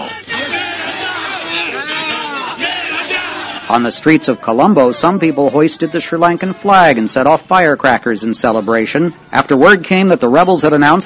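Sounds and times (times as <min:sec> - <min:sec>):
crowd of supporters cheering: 0:00.0 - 0:07.7
speech: 0:03.7 - 0:11.0.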